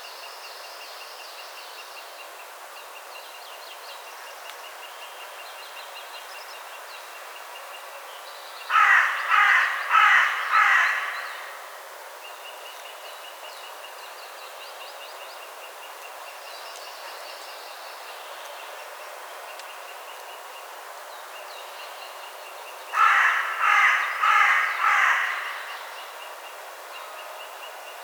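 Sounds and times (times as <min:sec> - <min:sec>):
Carrion crow Corvus corone cawing: 0:08.7 - 0:11.7, 0:22.9 - 0:25.9.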